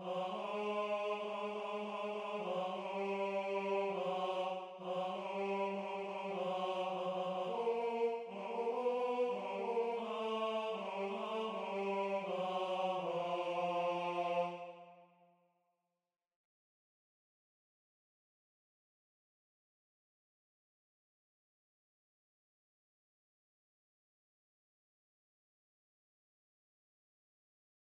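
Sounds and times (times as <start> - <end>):
tenor singing: 0.0 - 14.9.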